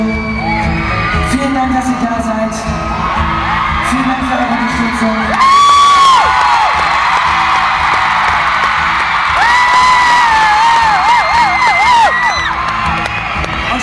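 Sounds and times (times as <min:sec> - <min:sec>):
shrill whistles: 0:00.0 - 0:00.9
concert crowd cheering and applauding: 0:00.0 - 0:02.0, 0:02.8 - 0:13.8.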